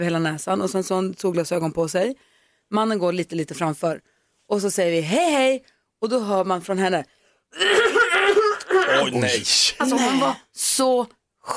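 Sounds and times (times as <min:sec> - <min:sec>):
speech: 0:00.0 - 0:11.5
voice imitating a deep hacking cough: 0:07.6 - 0:09.4.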